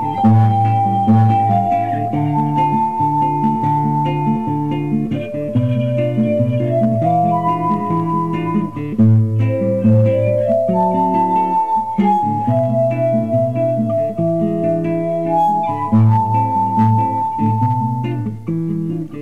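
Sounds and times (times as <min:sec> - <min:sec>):
guitar: 0:00.0 - 0:19.1.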